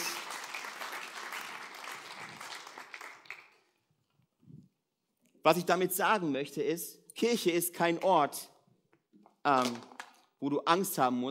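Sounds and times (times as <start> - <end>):
applause: 0.0 - 3.8
speech: 5.4 - 8.5, 9.4 - 11.2.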